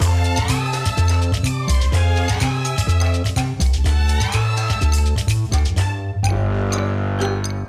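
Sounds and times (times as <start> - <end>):
world music without guitar: 0.0 - 7.6.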